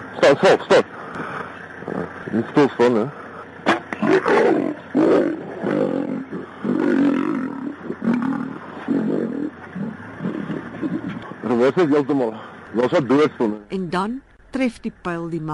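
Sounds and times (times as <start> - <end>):
speech: 0.2 - 3.2, 4.0 - 5.4, 11.5 - 15.5
lion roaring: 1.8 - 2.5, 3.9 - 11.7.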